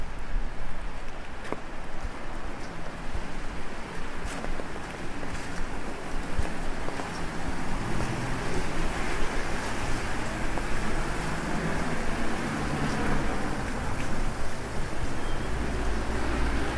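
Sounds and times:
low traffic rumble: 0.0 - 16.7
rain on an umbrella on a busy city street at night: 0.0 - 16.7.

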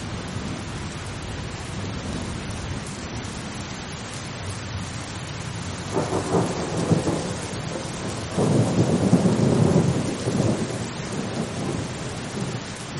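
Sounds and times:
calm rain: 0.0 - 12.9
thunder rumbling: 5.9 - 12.9.

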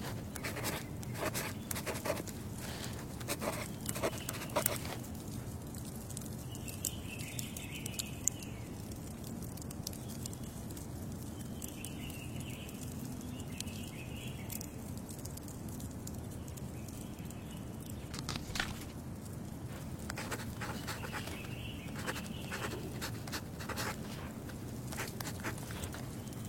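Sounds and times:
wood fire squeaking and crackling: 0.0 - 26.4.

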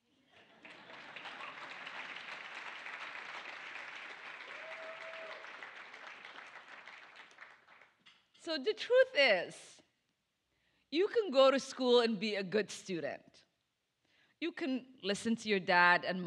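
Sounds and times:
audience applause: 0.4 - 7.9
speech: 8.4 - 9.8, 10.9 - 13.4, 14.4 - 16.2.

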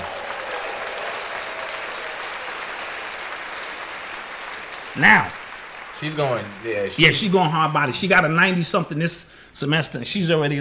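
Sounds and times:
clapping: 0.0 - 7.4
speech: 5.0 - 5.4, 6.0 - 10.5.

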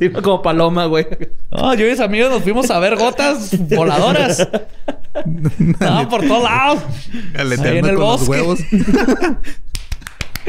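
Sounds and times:
speech: 0.0 - 9.7
laughter: 2.4 - 9.6
hand clapping: 9.7 - 10.4.

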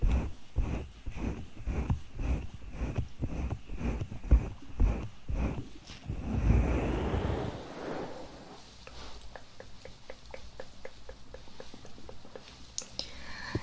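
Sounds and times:
soft thumping ear massage rubs: 0.0 - 9.2
louder rustling: 5.6 - 9.3
quick crisp mouth clicks and small wet taps: 9.2 - 13.1.

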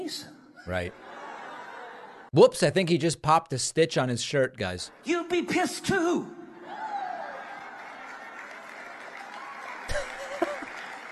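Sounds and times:
speech: 0.0 - 1.1, 2.3 - 6.4
laughter: 0.6 - 2.3, 9.8 - 11.1
muted crowd applause: 6.7 - 11.1.

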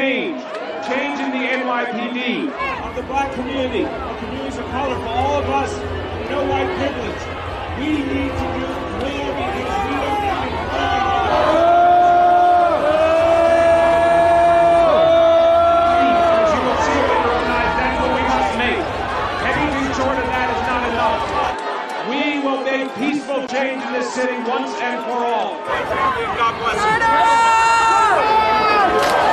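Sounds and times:
crowd booing a speaker: 0.0 - 29.3
speech: 1.8 - 9.8, 23.6 - 29.2
people shouting: 2.5 - 21.7, 25.6 - 29.3.

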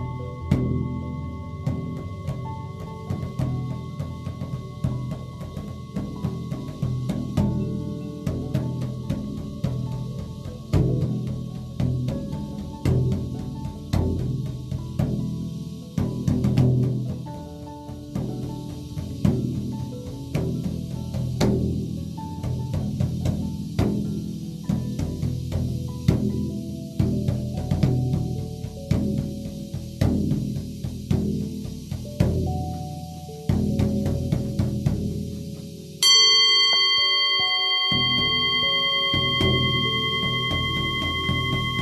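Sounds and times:
Tibetan singing bowl humming: 0.0 - 14.5, 36.0 - 41.8
buffalo drum beating: 0.0 - 41.8
bells ringing: 36.0 - 41.8.

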